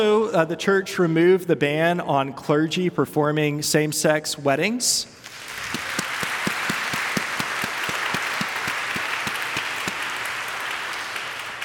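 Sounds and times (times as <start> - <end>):
speech: 0.0 - 5.8
audience applause: 5.3 - 11.6.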